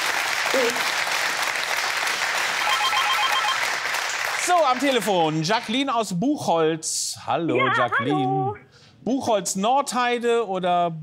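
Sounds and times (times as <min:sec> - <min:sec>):
applause: 0:00.0 - 0:05.8
speech: 0:00.5 - 0:01.0, 0:04.5 - 0:11.0.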